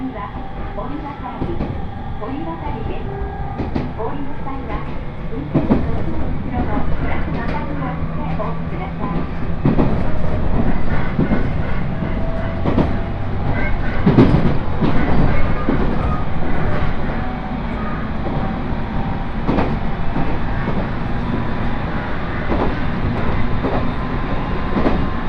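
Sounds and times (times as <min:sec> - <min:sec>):
crowded train rumble on the Uetsu Main Line: 0:00.0 - 0:25.2
sharp clicks and knocks from the rails: 0:00.1 - 0:25.2.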